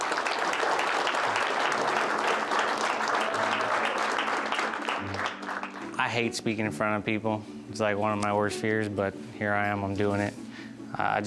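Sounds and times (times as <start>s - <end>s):
audience clapping: 0.0s - 6.3s
speech: 6.1s - 10.4s, 11.0s - 11.2s.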